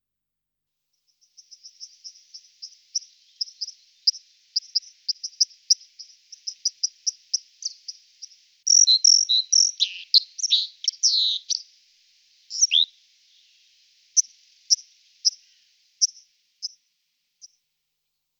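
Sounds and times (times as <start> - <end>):
White-throated dipper singing: 8.7 - 11.6, 12.5 - 12.9.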